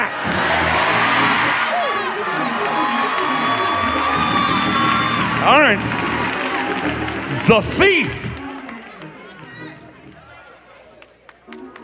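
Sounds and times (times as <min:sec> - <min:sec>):
large audience shouting and cheering: 0:00.0 - 0:11.1
scattered whoops: 0:01.7 - 0:05.4
speech: 0:05.6 - 0:05.9, 0:07.5 - 0:08.2.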